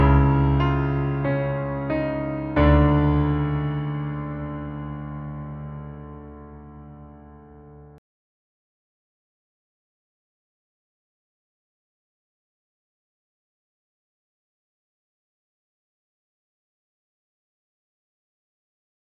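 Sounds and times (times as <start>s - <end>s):
dramatic piano music: 0.0s - 8.0s.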